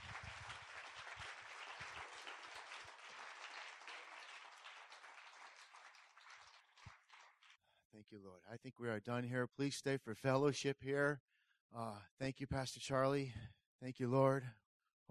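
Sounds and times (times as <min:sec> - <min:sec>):
crowd applauding: 0:00.0 - 0:07.6
speech: 0:08.0 - 0:15.0.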